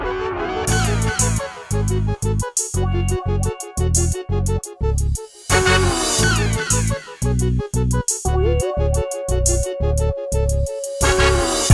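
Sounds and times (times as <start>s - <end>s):
video game g-funk music: 0.2s - 11.7s.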